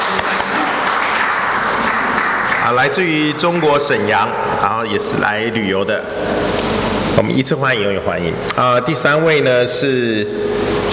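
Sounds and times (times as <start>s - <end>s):
audience applause welcoming guests at a gathering: 0.0s - 4.3s
speech: 2.7s - 6.4s, 7.2s - 10.9s.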